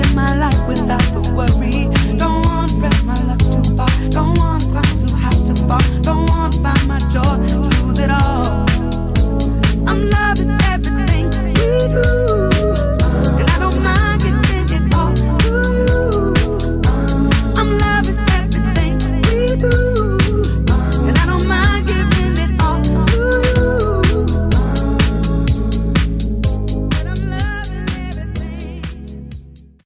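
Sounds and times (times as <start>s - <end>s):
house music samples: 0.0s - 29.8s.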